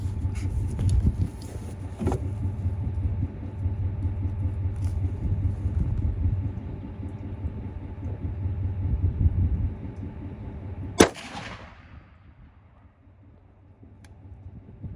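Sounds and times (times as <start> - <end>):
low rumbling background: 0.0 - 14.9
rifle shot fired while zeroing at 100 yards: 11.0 - 12.7.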